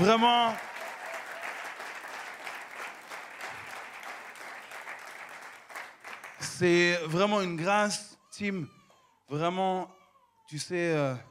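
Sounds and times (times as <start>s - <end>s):
speech: 0.0s - 0.7s, 6.4s - 11.2s
applause: 0.0s - 6.9s.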